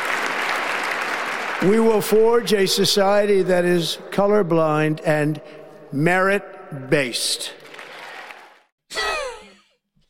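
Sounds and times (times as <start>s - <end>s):
audience clapping: 0.0s - 2.0s, 7.6s - 8.7s
speech: 1.6s - 7.6s.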